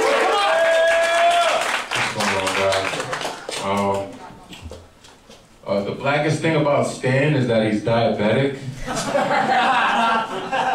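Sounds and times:
audience clapping for two battlers: 0.0 - 4.8
speech: 5.9 - 10.7
laughter: 8.8 - 10.7.

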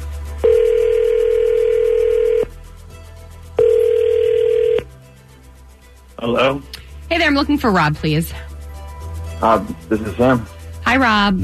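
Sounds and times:
low hum: 0.0 - 11.4
telephone ringback tone: 0.4 - 2.5, 3.6 - 4.9
speech: 6.2 - 8.5, 9.4 - 11.4.

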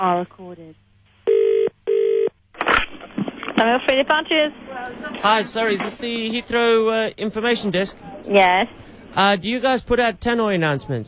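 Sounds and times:
speech: 0.0 - 0.9, 3.6 - 11.0
telephone ringback tone while call connects: 1.3 - 2.3.

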